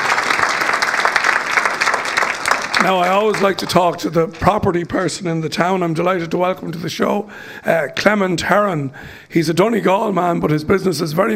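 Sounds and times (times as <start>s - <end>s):
audience applause for two local business owners: 0.0s - 4.2s
speech: 2.8s - 11.3s.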